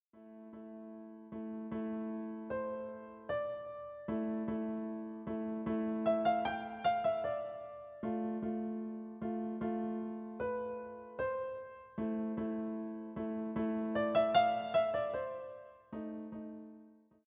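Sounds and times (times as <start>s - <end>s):
musette music: 0.2s - 17.1s.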